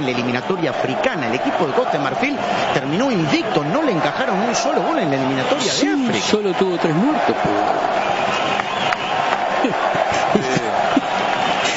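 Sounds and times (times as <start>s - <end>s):
speech: 0.0s - 8.8s, 9.6s - 11.0s
football stadium crowd roaring and cheering during an Ecuador match: 0.0s - 11.7s
laughter: 8.6s - 11.7s.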